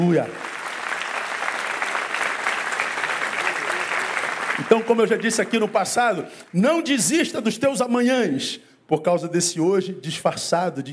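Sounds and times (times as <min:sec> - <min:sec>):
speech: 0:00.0 - 0:00.4, 0:04.6 - 0:10.9
audience applauding: 0:00.0 - 0:06.6.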